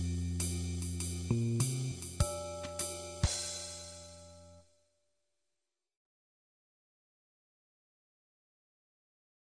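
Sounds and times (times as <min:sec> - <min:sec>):
drums: 0:00.0 - 0:04.2.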